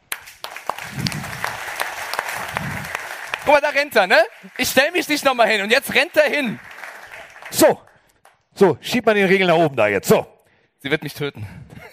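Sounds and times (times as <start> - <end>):
live audience applause: 0.0 - 8.0
speech: 3.5 - 6.7, 7.5 - 7.8, 8.6 - 11.6.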